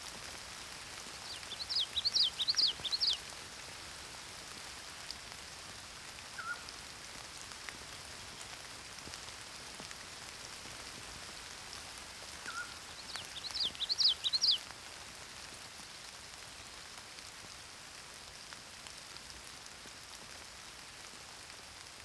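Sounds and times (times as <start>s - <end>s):
rain: 0.0s - 22.0s
morning songbirds singing: 1.0s - 3.3s, 12.5s - 14.6s
pygmy owl calling: 1.3s - 3.2s, 6.4s - 6.7s.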